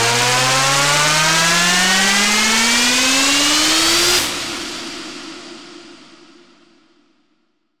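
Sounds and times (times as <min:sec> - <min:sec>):
riser sweep: 0:00.2 - 0:06.6.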